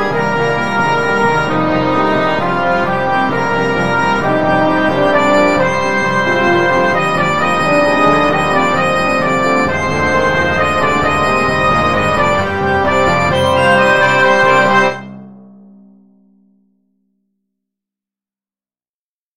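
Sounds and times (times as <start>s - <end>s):
wind ensemble playing: 0.0s - 15.2s.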